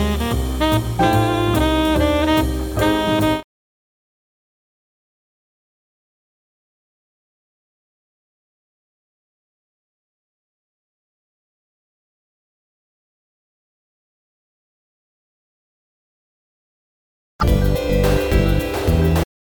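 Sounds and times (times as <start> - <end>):
jazz orchestra: 0.0 - 3.4, 17.4 - 19.3.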